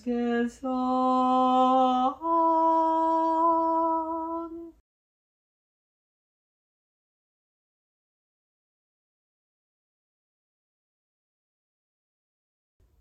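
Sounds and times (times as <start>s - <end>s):
tenor singing a verse: 0.0s - 4.8s.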